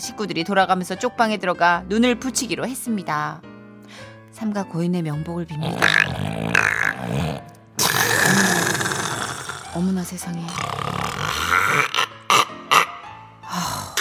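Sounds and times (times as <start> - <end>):
speech: 0.0 - 6.5, 9.8 - 10.9
loud snoring: 5.6 - 13.2, 13.8 - 14.0.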